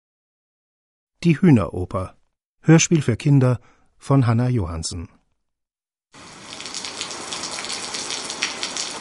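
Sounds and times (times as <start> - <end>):
speech: 1.2 - 5.2
heavy pouring rain: 6.2 - 8.9.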